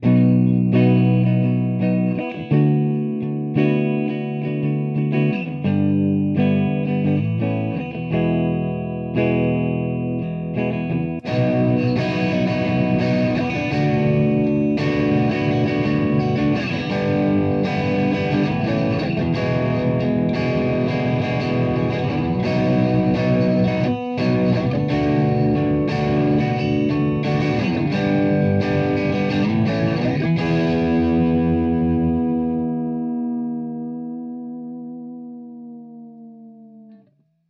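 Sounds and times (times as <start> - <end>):
distorted guitar through distortion pedals: 0.0 - 37.3.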